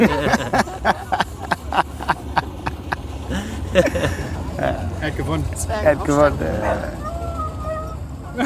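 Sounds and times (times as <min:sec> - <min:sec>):
speech: 0:00.0 - 0:00.4, 0:03.8 - 0:04.1, 0:05.1 - 0:07.1
laughter: 0:00.0 - 0:05.0
dog whimpering: 0:06.6 - 0:08.4.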